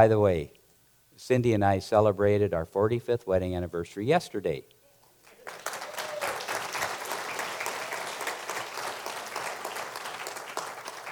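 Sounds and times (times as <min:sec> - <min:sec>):
speech: 0:00.0 - 0:00.6, 0:01.2 - 0:04.8
audience applause: 0:05.2 - 0:11.1.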